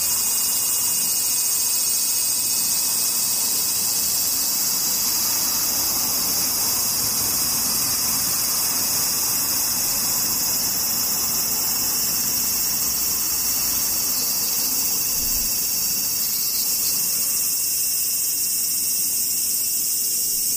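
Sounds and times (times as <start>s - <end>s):
cicadas droning: 0.0s - 20.5s.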